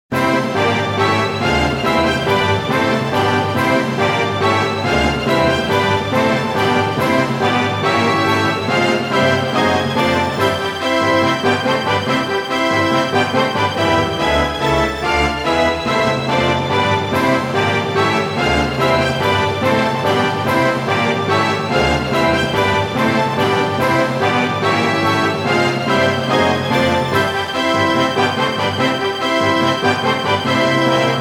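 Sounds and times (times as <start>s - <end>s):
symphony orchestra: 0.1s - 31.1s.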